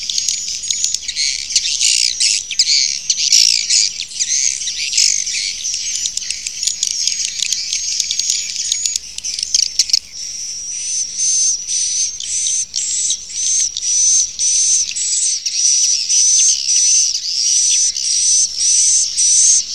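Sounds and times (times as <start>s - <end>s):
swiftlet twittering calls: 0.0s - 19.7s.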